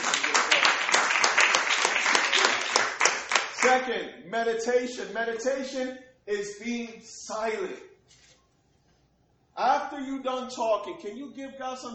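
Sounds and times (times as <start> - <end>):
audience applause: 0.0 - 3.7
speech: 3.6 - 7.9, 9.6 - 11.9.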